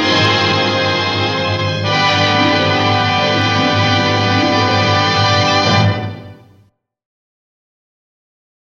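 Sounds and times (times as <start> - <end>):
instrumental music: 0.0 - 6.7.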